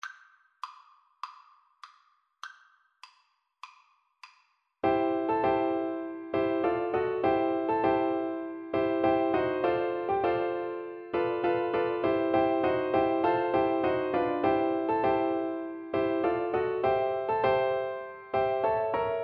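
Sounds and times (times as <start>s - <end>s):
four-hands piano duet: 4.8s - 19.2s.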